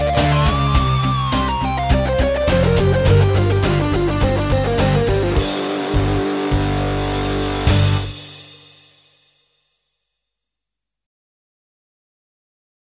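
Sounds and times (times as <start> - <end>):
rock guitar: 0.0 - 8.6.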